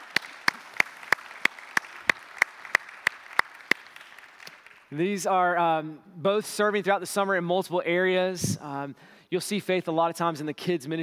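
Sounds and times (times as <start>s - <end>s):
audience applause: 0.0s - 4.9s
speech: 4.9s - 11.0s.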